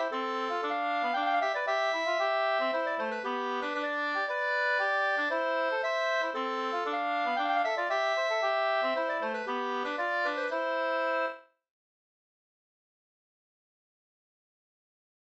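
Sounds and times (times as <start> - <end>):
polska folk dance tune: 0.0 - 11.4.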